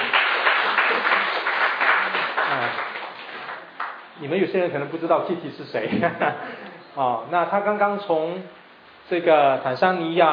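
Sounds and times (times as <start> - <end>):
audience applause: 0.0 - 4.0
speech: 4.2 - 10.3.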